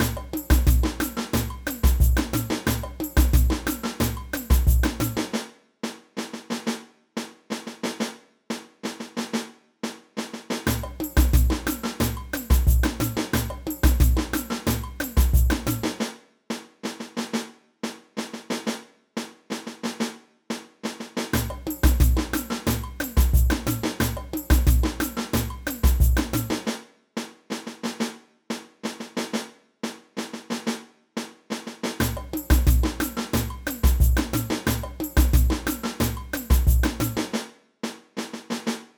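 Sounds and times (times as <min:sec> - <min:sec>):
samba music: 0:00.0 - 0:05.5, 0:10.6 - 0:16.2, 0:21.3 - 0:26.8, 0:31.9 - 0:37.5
caixa snare drum: 0:00.0 - 0:38.9.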